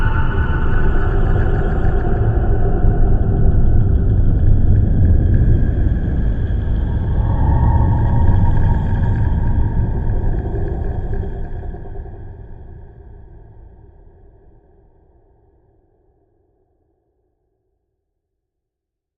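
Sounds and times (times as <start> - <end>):
sky atmosphere ambience: 0.0 - 12.8.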